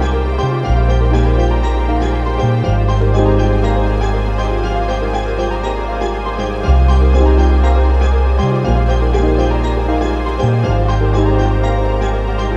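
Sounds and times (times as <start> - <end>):
ambient music: 0.0 - 12.5.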